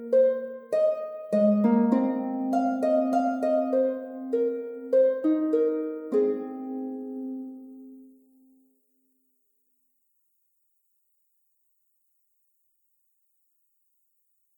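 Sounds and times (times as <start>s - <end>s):
little harp piece: 0.0s - 8.2s.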